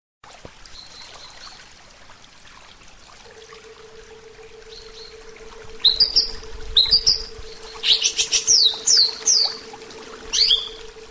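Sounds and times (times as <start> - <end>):
Oriental magpie-robin singing a soft rambling series of whistled notes: 5.8 - 9.6, 10.3 - 10.8.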